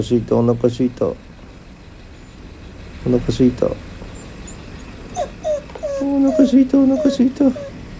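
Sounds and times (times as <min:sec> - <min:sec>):
speech: 0:00.0 - 0:01.3, 0:03.0 - 0:03.9, 0:06.0 - 0:07.7
Hokkaido dog whining: 0:04.1 - 0:07.9.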